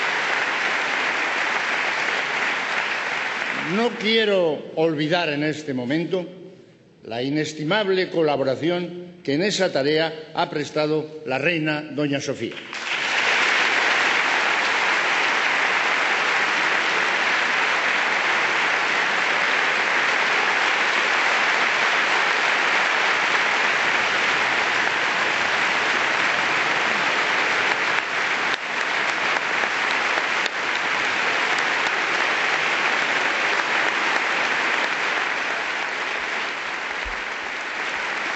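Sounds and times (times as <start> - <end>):
standing ovation applause for Queen Sofía: 0.0 - 4.4, 12.5 - 38.3
speech: 3.7 - 6.4, 7.0 - 12.8.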